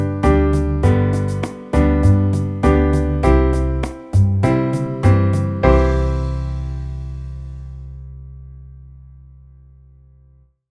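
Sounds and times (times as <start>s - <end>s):
C major chord progressions: 0.0s - 8.4s.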